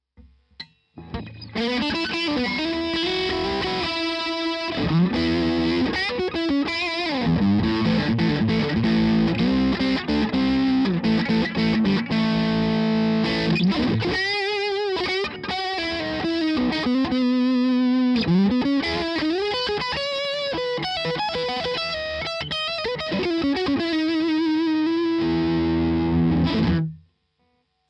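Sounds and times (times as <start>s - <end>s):
electric guitar with both pickups and gain: 1.0s - 27.1s.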